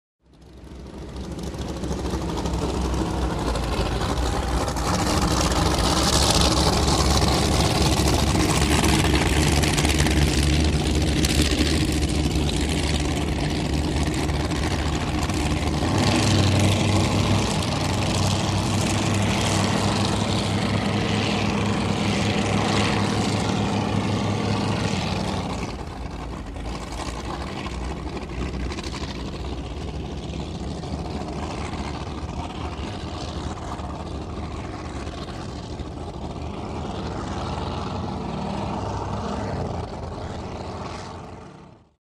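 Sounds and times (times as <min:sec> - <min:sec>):
racing offshore power boat heard from the interior: 0:00.2 - 0:42.0.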